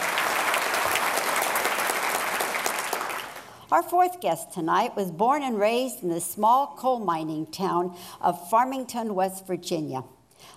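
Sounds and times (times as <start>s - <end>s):
large audience applause: 0.0s - 3.6s
speech: 3.7s - 10.5s.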